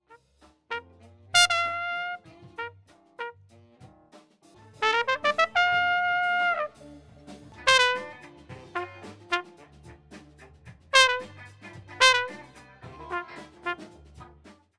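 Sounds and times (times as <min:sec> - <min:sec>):
trumpet recorded with Shure SM58 microphone: 0:00.0 - 0:03.4, 0:04.8 - 0:06.9, 0:07.6 - 0:09.6, 0:11.0 - 0:14.0.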